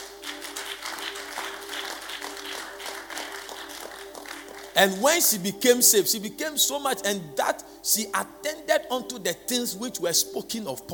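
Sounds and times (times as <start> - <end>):
audience clapping: 0.0 - 5.4
speech: 4.8 - 10.9.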